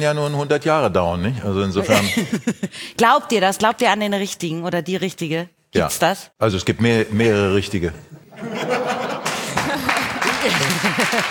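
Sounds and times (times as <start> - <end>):
speech: 0.0 - 9.0, 10.4 - 11.3
laughter: 1.8 - 2.8, 8.1 - 11.3
men clapping: 9.0 - 11.3.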